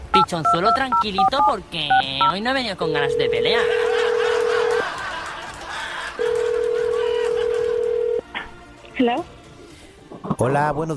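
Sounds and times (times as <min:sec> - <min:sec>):
speech: 0:00.3 - 0:04.0, 0:09.0 - 0:09.4, 0:10.2 - 0:10.9
laughter: 0:03.5 - 0:08.0
telephone dialing: 0:06.2 - 0:08.2.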